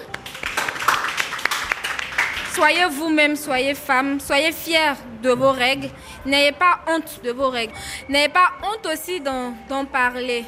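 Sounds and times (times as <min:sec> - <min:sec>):
audience applause: 0:00.1 - 0:02.6
speech: 0:02.6 - 0:10.4.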